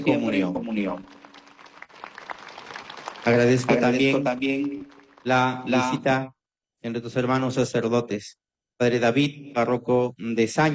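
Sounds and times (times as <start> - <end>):
speech: 0.0 - 1.2, 3.2 - 10.7
audience applause: 0.0 - 6.0.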